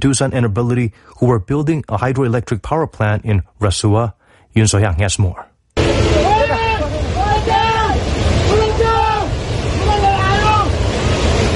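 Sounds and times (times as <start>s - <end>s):
speech: 0.0s - 5.5s
rushing floodwaters of the Trishuli River: 5.8s - 11.5s.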